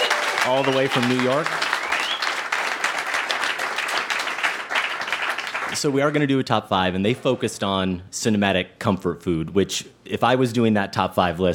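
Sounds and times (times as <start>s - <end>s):
audience applause: 0.0s - 5.8s
speech: 0.4s - 1.7s, 5.7s - 11.5s.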